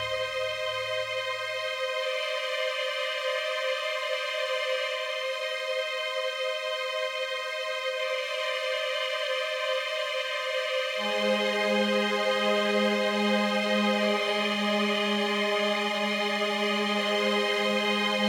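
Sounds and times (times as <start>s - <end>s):
music: 0.0s - 18.2s.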